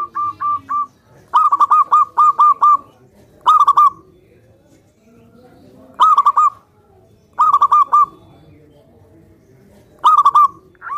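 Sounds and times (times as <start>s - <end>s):
zebra dove song: 0.0s - 4.2s, 5.9s - 6.7s, 7.3s - 8.6s, 9.9s - 10.9s.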